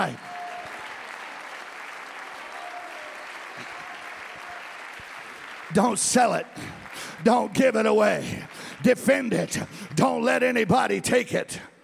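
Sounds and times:
speech: 0.0 - 0.3, 5.7 - 11.7
audience clapping hands: 0.0 - 11.2.

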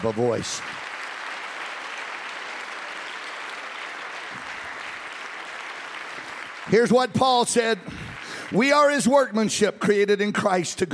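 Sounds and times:
speech: 0.0 - 0.8, 6.7 - 10.9
audience clapping hands: 0.0 - 10.1.

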